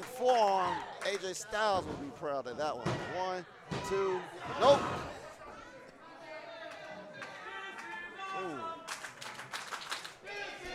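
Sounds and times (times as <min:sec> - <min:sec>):
crowd clapping and cheering: 0:00.0 - 0:01.7, 0:06.6 - 0:10.7
speech: 0:00.2 - 0:05.2.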